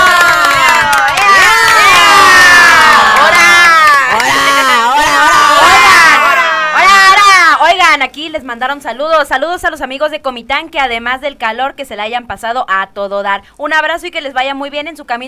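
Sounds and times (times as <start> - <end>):
loud applause: 0.0 - 5.1
crowd cheering: 0.0 - 7.6
speech: 8.5 - 15.2.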